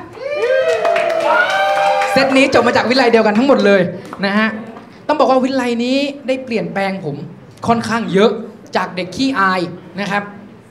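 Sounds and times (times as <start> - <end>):
audience applause: 0.2 - 3.4
speech: 2.2 - 10.4.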